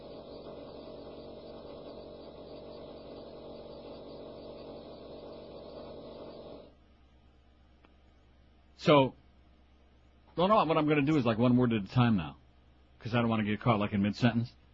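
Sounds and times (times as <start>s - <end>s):
drilling on the floor below: 0.0s - 6.7s
speech: 8.8s - 9.2s, 10.4s - 12.4s, 13.0s - 14.6s.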